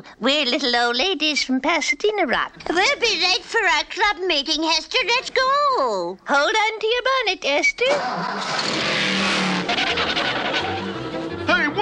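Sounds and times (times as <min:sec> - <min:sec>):
speech: 0:00.0 - 0:09.0
car driving off with engine revving: 0:08.1 - 0:11.8.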